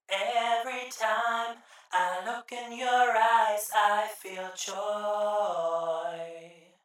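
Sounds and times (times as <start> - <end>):
vocal duet: 0.1 - 6.8.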